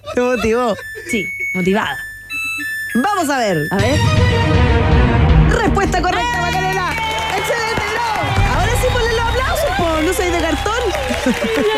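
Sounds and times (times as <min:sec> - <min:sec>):
laughter: 0:00.0 - 0:01.3, 0:09.4 - 0:11.7
speech: 0:00.2 - 0:06.4, 0:09.8 - 0:11.7
applause and cheering: 0:05.5 - 0:11.7.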